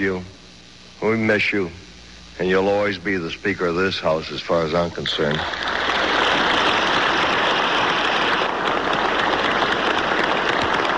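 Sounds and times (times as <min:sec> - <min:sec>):
speech: 0:00.0 - 0:00.4, 0:01.0 - 0:05.8
applause from a large crowd in the House chamber: 0:05.1 - 0:10.9.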